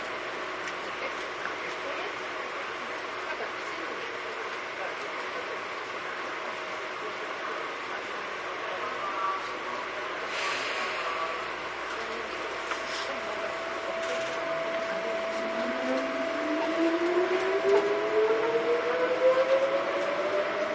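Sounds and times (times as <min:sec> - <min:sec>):
Tobu 9000 series train hum and rumble: 0:00.0 - 0:20.7
Tobu 9000 series train motor whine rising as it speeds up: 0:15.0 - 0:20.7.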